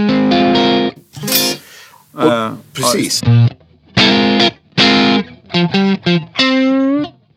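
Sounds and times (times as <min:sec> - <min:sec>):
electric guitar through compressor pedal with ratio turned down: 0:00.0 - 0:01.0, 0:03.2 - 0:07.3
speech: 0:02.2 - 0:03.6, 0:05.6 - 0:06.3.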